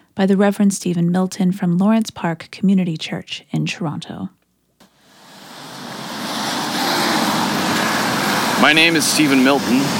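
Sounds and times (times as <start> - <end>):
speech: 0.2 - 4.4, 8.6 - 9.9
street traffic at Avenue Road and Bloor Street in downtown Toronto: 5.0 - 9.9.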